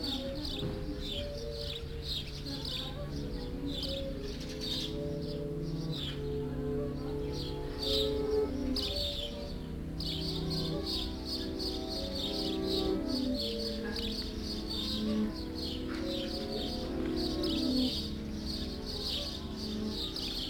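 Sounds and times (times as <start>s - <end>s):
backward piano: 0.0s - 20.4s
birds singing: 0.0s - 20.4s
song: 0.0s - 20.4s.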